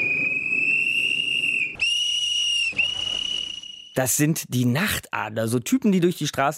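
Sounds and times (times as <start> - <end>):
trill whistles blown in night streets of Istanbul: 0.0 - 4.0
speech: 4.0 - 6.5.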